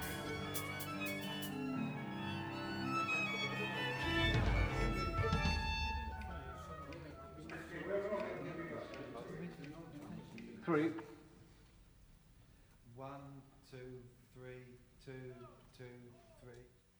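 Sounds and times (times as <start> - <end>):
orchestra playing: 0.0 - 8.0
bellscape: 0.0 - 8.2.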